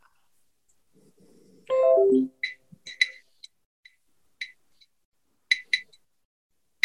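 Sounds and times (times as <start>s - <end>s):
text-scanning app clicking as words are detected: 1.7s - 2.3s.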